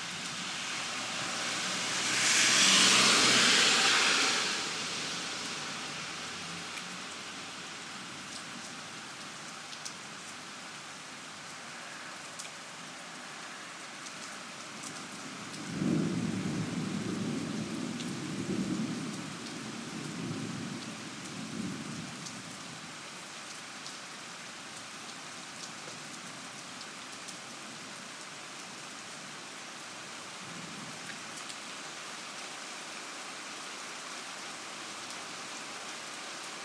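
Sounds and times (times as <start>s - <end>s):
thunderstorm at midnight: 0.1s - 5.2s, 15.5s - 22.2s.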